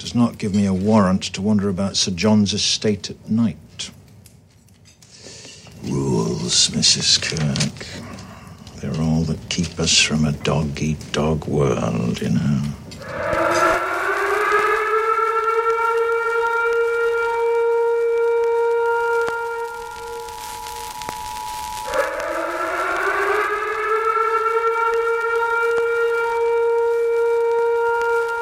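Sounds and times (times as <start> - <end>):
speech: 0.1 - 4.0, 5.8 - 8.1, 8.8 - 13.6
emergency alert siren: 13.0 - 28.4.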